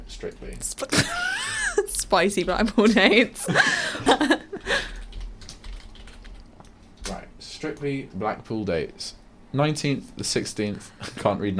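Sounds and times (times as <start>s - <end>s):
speech: 0.1s - 4.4s, 7.6s - 11.5s
laughter: 2.7s - 4.9s
typing a search on a computer keyboard: 4.8s - 7.9s.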